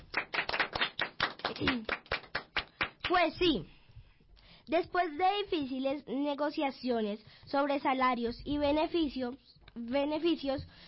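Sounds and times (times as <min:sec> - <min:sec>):
applause: 0:00.0 - 0:03.2
speech: 0:01.5 - 0:02.0, 0:03.1 - 0:03.8, 0:04.7 - 0:10.8.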